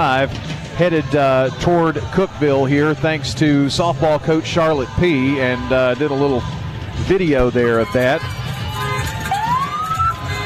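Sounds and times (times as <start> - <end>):
speech: 0.0 - 8.4
low traffic rumble: 0.0 - 10.4
siren wailing: 7.6 - 10.4.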